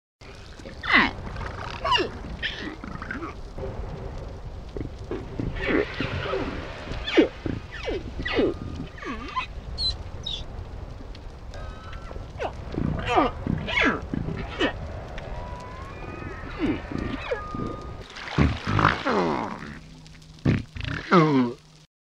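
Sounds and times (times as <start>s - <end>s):
humpback whale song: 0.2s - 21.8s
underwater rumble: 0.2s - 21.8s.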